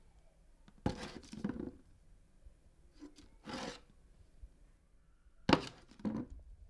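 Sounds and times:
plastic bottle being set down: 0.8 - 1.8, 5.5 - 6.3.

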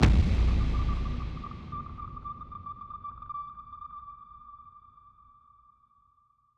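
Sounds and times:
deep cinematic impact: 0.0 - 3.0.

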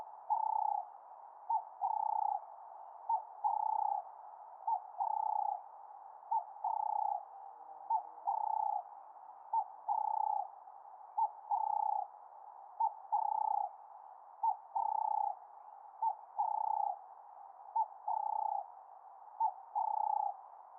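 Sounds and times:
Cape turtle dove cooing: 0.0 - 0.9, 1.5 - 2.5, 3.1 - 4.1, 4.7 - 5.6, 6.3 - 8.9, 9.5 - 10.5, 11.2 - 12.1, 12.8 - 13.8, 14.4 - 15.4, 16.0 - 17.0, 17.8 - 18.7, 19.4 - 20.4.

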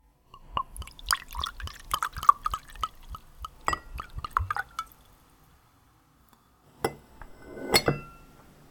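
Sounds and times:
pouring vodka: 0.4 - 5.4.

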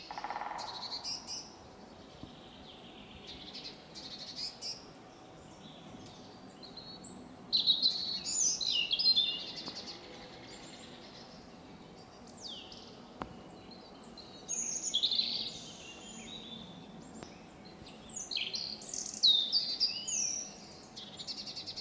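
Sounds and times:
woodpecker pecking: 0.0 - 1.2
forest birds singing: 0.0 - 21.7.

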